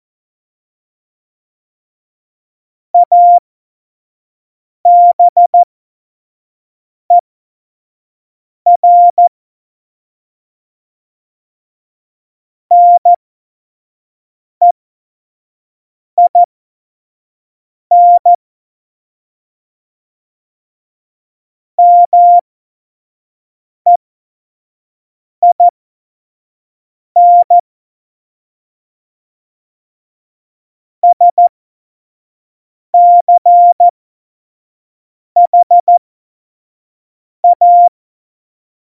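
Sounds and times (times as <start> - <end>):
CW Morse code beeps: 3.0 - 3.4, 4.9 - 5.7, 8.7 - 9.3, 12.7 - 13.2, 16.2 - 16.5, 17.9 - 18.4, 21.8 - 22.4, 25.4 - 25.7, 27.2 - 27.6, 31.0 - 31.5, 33.0 - 33.9, 35.4 - 36.0, 37.4 - 38.0.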